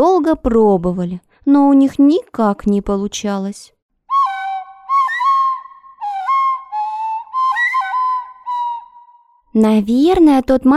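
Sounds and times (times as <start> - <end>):
speech: 0.0 - 3.8, 9.6 - 10.7
flute being blown: 4.1 - 9.4.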